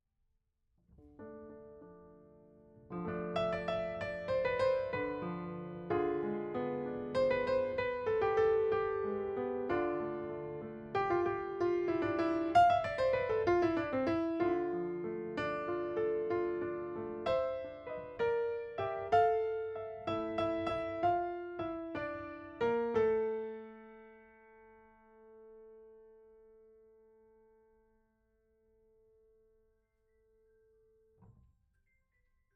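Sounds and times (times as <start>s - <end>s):
piano note B: 1.2s - 24.1s.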